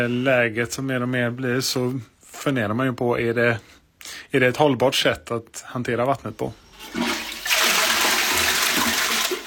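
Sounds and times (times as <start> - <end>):
speech: 0.0 - 7.1
toilet flushing: 6.6 - 9.4.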